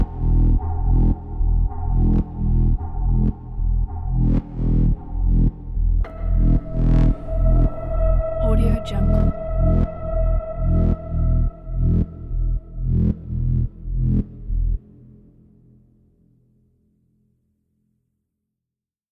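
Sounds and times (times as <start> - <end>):
dark claustrophobic horror background ambience: 0.0 - 15.0.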